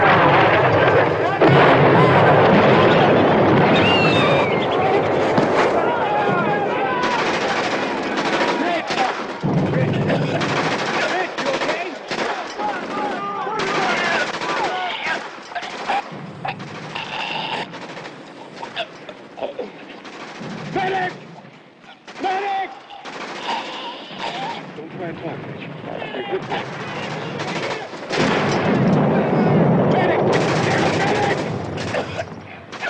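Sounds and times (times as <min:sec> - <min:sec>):
voices shouting: 0:00.0 - 0:24.8, 0:26.0 - 0:28.4, 0:29.1 - 0:32.8
incoming artillery fire and explosions: 0:00.0 - 0:32.8.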